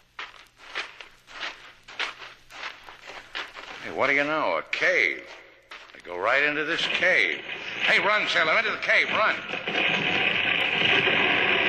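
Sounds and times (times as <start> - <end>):
footsteps following a trail of fresh moccasin prints: 0.0 - 11.6
speech: 3.9 - 5.4, 6.0 - 10.0.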